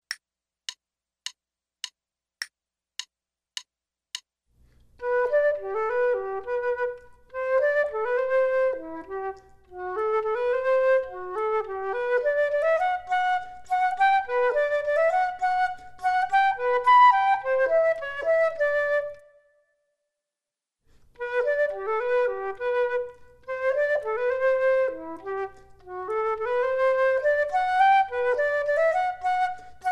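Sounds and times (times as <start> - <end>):
flute duet: 5.0 - 19.8, 21.1 - 29.9.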